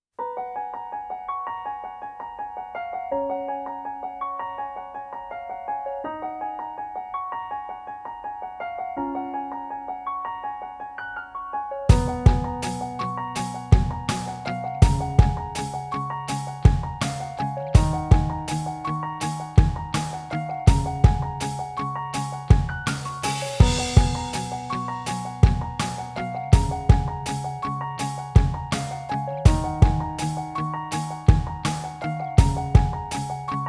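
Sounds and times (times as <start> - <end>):
rainy instrumental music: 8.8 - 33.6.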